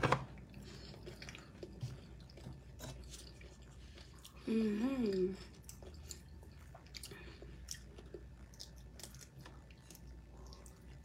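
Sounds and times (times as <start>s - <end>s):
person chewing and biting food: 0.2s - 11.0s
speech: 4.5s - 5.5s.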